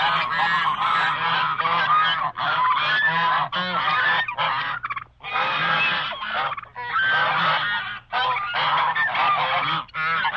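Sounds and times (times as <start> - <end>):
geese and ducks honking: 0.0 - 10.3.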